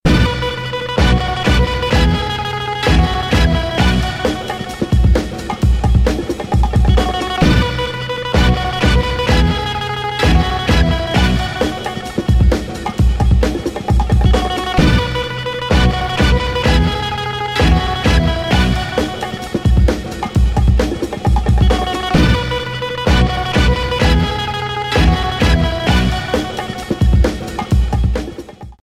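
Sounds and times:
funk music: 0.0s - 28.8s.

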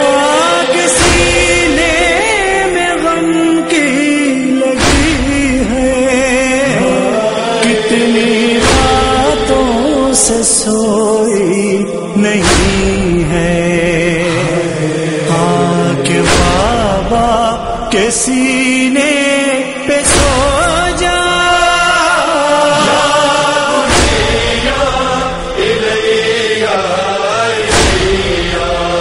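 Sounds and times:
noha lament recitation: 0.0s - 29.0s.

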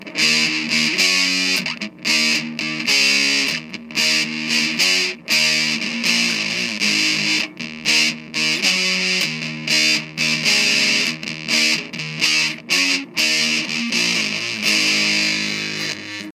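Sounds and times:
musical riff: 0.0s - 16.3s.

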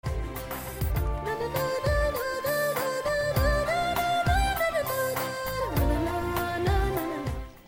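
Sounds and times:
music: 0.0s - 7.6s.

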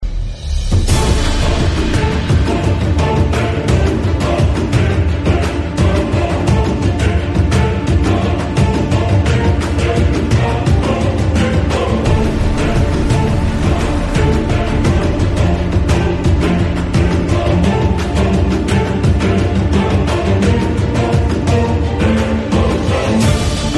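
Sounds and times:
cinema trailer: 0.0s - 23.7s.

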